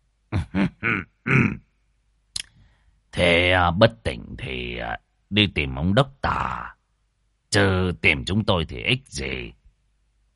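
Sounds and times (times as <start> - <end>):
man clearing his throat: 0.3 - 1.7
speech: 3.6 - 6.8, 7.5 - 9.6.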